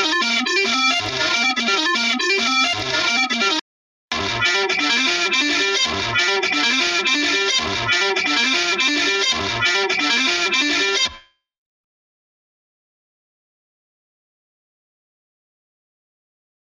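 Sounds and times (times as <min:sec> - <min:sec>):
lead melody: 0:00.0 - 0:11.1.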